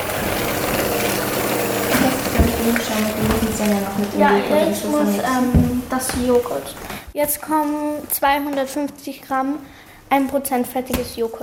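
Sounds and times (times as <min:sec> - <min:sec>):
electric mixer whipping sugar and eggs: 0:00.0 - 0:06.5
speech: 0:02.7 - 0:11.4.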